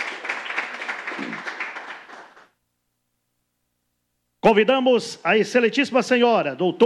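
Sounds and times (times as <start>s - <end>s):
audience applause: 0.0s - 2.6s
speech: 4.4s - 6.8s.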